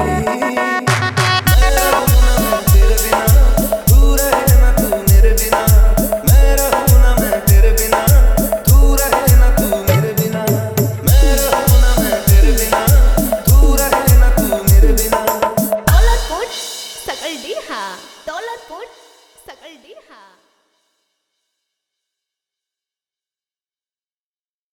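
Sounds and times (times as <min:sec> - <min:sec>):
Raksha Bandhan special pad mix DJ song: 0:00.0 - 0:10.5, 0:11.1 - 0:16.3.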